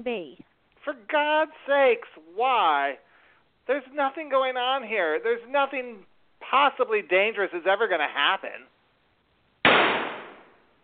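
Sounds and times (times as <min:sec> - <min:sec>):
speech: 0:00.0 - 0:03.0, 0:03.7 - 0:08.7
gunshot: 0:09.6 - 0:10.6.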